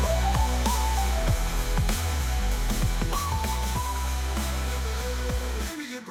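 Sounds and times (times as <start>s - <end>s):
interlude music: 0.0s - 5.7s.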